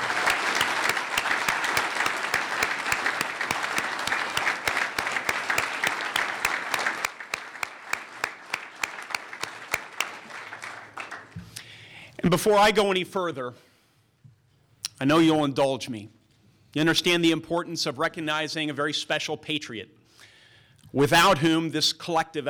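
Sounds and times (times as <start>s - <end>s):
large audience applause: 0.0s - 11.4s
speech: 12.3s - 13.7s, 15.0s - 20.0s, 20.9s - 22.4s.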